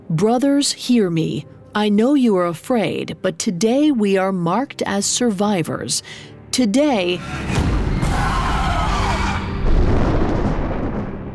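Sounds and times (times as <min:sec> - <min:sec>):
speech: 0:00.1 - 0:08.3
booming crash of thunder: 0:07.6 - 0:11.3.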